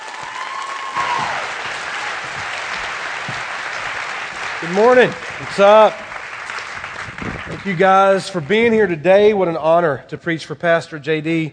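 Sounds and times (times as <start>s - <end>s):
church congregation applauding to welcome a guest preacher: 0.0s - 8.4s
speech: 4.6s - 6.0s, 7.6s - 11.5s.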